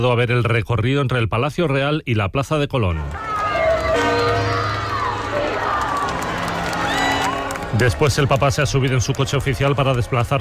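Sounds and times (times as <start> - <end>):
speech: 0.0 - 3.3, 7.7 - 10.3
crowd chanting in the street: 3.0 - 7.9
crowd shouting a chant: 3.0 - 10.0.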